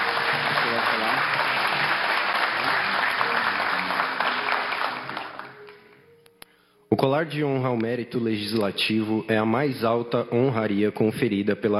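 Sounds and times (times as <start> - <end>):
audience applause: 0.0 - 5.8
speech: 7.0 - 11.7.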